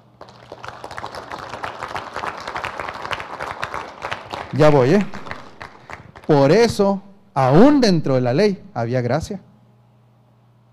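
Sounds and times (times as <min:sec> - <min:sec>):
audience applauding: 0:00.0 - 0:07.0
speech: 0:04.5 - 0:05.2, 0:06.3 - 0:09.5.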